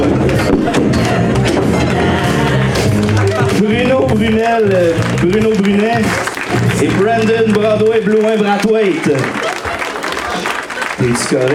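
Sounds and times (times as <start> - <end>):
crowd applauding: 0.0 - 11.5
laughter: 0.0 - 11.5
voices cheering: 0.0 - 11.5
speech: 4.5 - 6.2, 6.8 - 9.4, 11.0 - 11.5.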